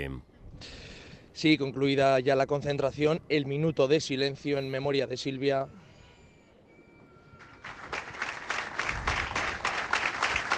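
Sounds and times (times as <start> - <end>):
speech: 0.0 - 0.8, 1.4 - 5.8
applause: 7.4 - 10.5.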